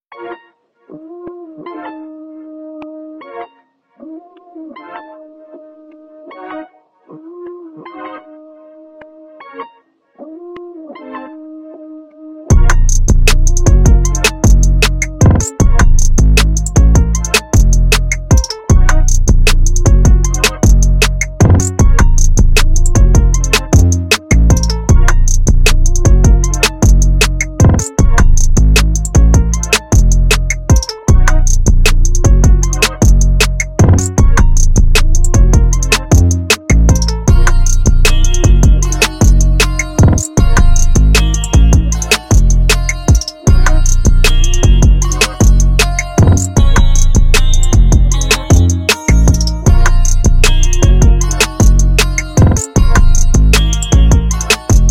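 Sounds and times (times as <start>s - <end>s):
instrumental rap hip hop fast trap beat: 12.5s - 54.9s.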